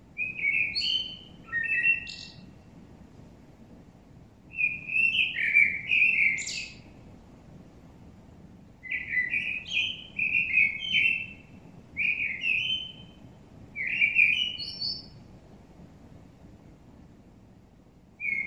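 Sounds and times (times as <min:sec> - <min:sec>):
common blackbird Turdus merula song: 0:00.2 - 0:02.6, 0:04.5 - 0:07.0, 0:08.8 - 0:15.3, 0:18.2 - 0:18.4.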